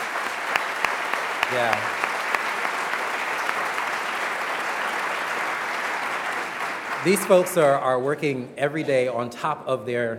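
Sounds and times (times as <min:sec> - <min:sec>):
audience round of applause: 0:00.0 - 0:08.0
speech: 0:01.5 - 0:02.0, 0:07.0 - 0:10.1.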